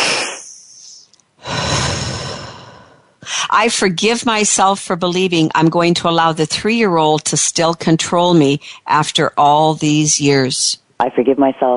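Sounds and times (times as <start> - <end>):
deep breath: 1.4 - 3.5
speech: 3.5 - 11.7.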